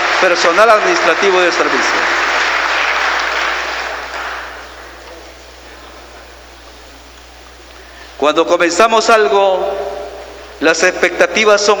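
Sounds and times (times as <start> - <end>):
audience applause: 0.0 - 6.4
speech: 0.2 - 2.2, 8.2 - 9.9, 10.6 - 11.7.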